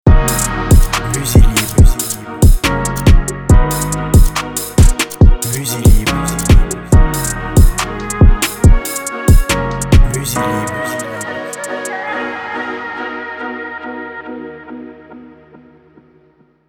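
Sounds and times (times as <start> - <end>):
ninja drill beat: 0.0 - 11.8.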